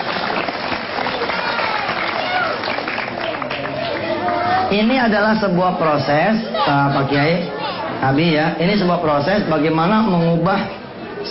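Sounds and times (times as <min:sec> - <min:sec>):
audience clapping: 0:00.0 - 0:04.6
speech: 0:04.7 - 0:11.2.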